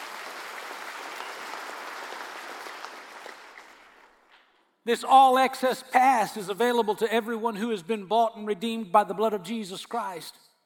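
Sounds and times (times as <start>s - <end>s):
audience hand clapping: 0.0s - 4.5s
speech: 4.8s - 10.4s.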